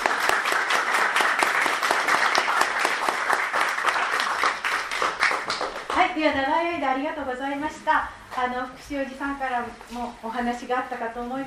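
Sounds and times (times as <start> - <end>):
audience applause at the close of a gathering: 0.0 - 6.0
speech: 6.2 - 11.4.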